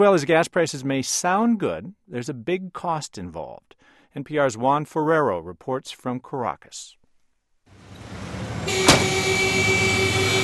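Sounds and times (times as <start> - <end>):
speech: 0.0 - 7.0
city street traffic engine rumble: 7.7 - 10.4
sustained horn-like tone: 8.6 - 10.4.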